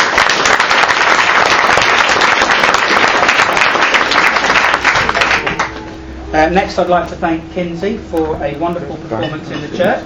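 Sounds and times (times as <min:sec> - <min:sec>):
audience applause: 0:00.0 - 0:05.8
speech: 0:06.4 - 0:10.0.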